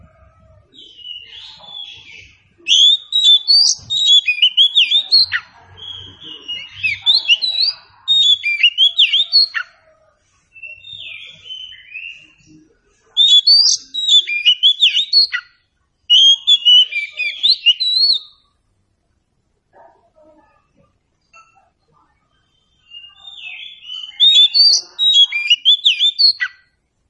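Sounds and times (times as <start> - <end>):
Oriental Magpie-Robin whistling song: 0.7 - 9.7, 10.6 - 12.4, 13.2 - 18.4, 22.7 - 26.6.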